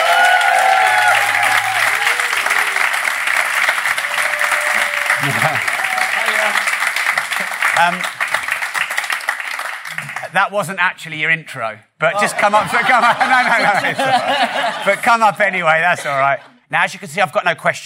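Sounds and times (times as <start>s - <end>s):
audience round of applause: 0.0s - 10.4s
laughter: 4.8s - 6.5s, 12.2s - 16.6s
speech: 7.8s - 8.2s, 10.4s - 17.8s.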